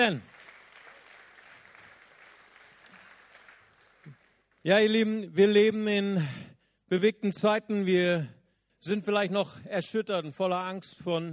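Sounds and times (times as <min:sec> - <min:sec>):
speech: 0:00.0 - 0:00.3, 0:04.6 - 0:11.3
audience applause: 0:00.0 - 0:04.6.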